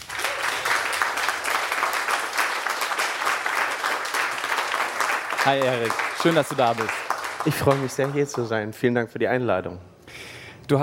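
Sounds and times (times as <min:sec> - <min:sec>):
audience applause: 0:00.0 - 0:08.6
speech: 0:05.4 - 0:10.8.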